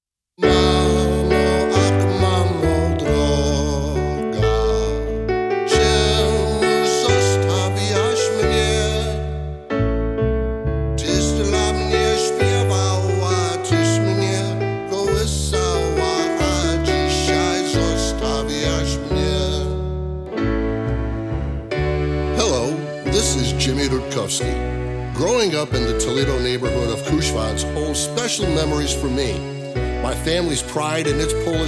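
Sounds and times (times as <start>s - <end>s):
waltz medley: 0.4s - 31.6s.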